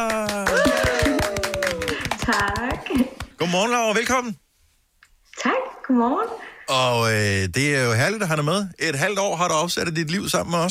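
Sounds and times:
people clapping in welcome: 0.0 - 3.5
speech: 3.0 - 4.4, 5.4 - 10.6.

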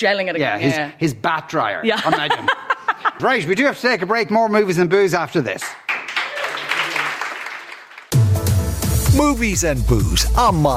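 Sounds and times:
speech: 0.0 - 2.6, 3.2 - 5.8, 9.2 - 10.7
laughter: 1.9 - 3.5
people in the studio clapping: 5.5 - 8.2.

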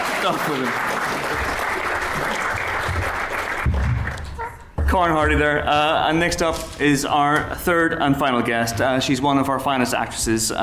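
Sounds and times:
audience applause: 0.0 - 4.6
speech: 0.2 - 1.6, 4.9 - 10.6.

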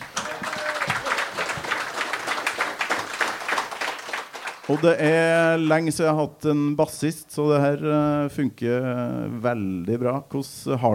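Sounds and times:
loud audience applause: 0.0 - 5.0
speech: 4.7 - 10.9.

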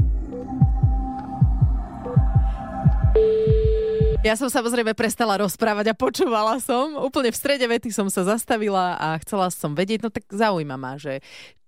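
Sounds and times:
low throbbing music bed: 0.0 - 4.3
speech: 4.2 - 11.6.

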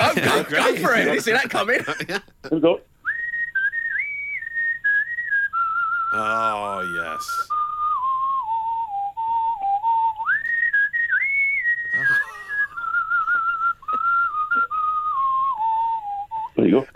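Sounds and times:
laughter: 0.0 - 2.4, 11.9 - 13.6
speech: 0.4 - 2.9, 6.1 - 7.5, 16.6 - 16.9
person whistling a rock tune: 3.1 - 6.4, 7.0 - 16.6.

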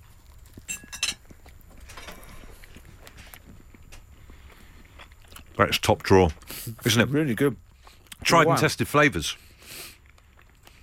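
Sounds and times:
knife and fork scraping and clinking on a plate: 0.7 - 1.2
speech: 5.6 - 7.6, 8.3 - 9.4.

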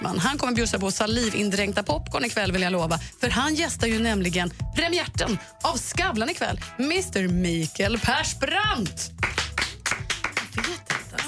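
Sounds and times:
speech: 0.2 - 9.4
small audience hand clapping: 9.2 - 11.2.

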